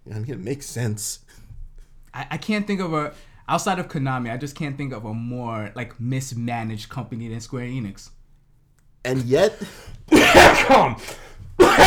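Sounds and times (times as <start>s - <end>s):
speech: 0.1s - 1.4s, 2.2s - 8.2s, 9.0s - 11.8s
harsh coughing: 9.6s - 11.8s.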